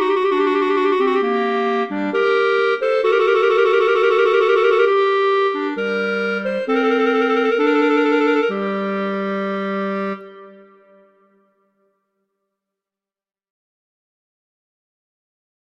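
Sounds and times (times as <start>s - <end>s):
slow classical piece: 0.0s - 11.8s.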